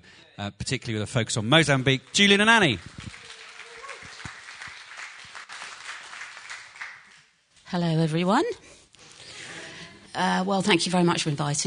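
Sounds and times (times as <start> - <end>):
speech: 0.4 - 3.2, 7.7 - 8.8, 10.2 - 11.6
audience cheering and applause: 1.7 - 7.2.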